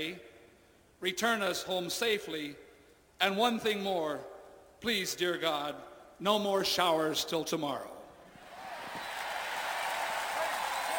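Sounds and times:
speech: 0.0s - 0.3s, 1.0s - 2.6s, 3.2s - 7.9s
large crowd cheering and applauding: 8.4s - 10.9s.

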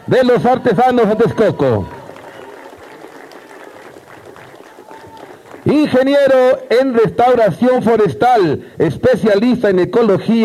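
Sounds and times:
speech: 0.1s - 2.0s, 5.7s - 10.4s
audience applause: 0.8s - 6.6s.

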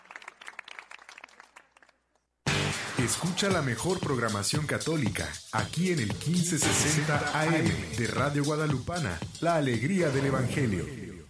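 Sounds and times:
crowd applause: 0.0s - 1.9s
speech: 3.0s - 11.0s.

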